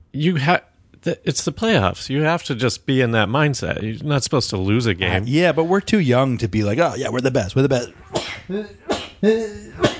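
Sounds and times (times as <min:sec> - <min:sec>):
speech: 0:00.1 - 0:09.9
person sneezing: 0:08.0 - 0:09.9.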